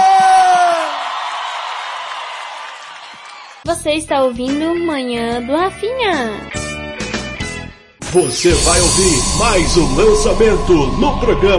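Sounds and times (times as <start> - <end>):
audience cheering: 0.0 - 3.6, 8.5 - 11.5
audience applause: 0.0 - 3.7
speech: 3.7 - 6.5, 8.1 - 11.5.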